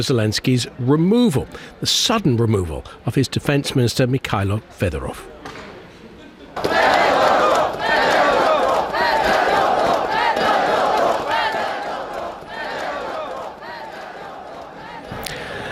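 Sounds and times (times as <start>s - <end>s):
speech: 0.0s - 5.6s
street protesters in Ukraine chanting: 6.6s - 15.7s.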